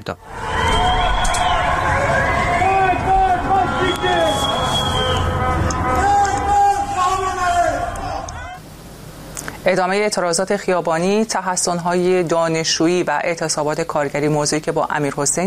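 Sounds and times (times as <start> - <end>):
speech: 0.0 - 0.7, 9.6 - 15.4
high wavering siren-like tone: 0.2 - 6.8
crowds chanting protest slogans in Tehran: 0.2 - 8.6.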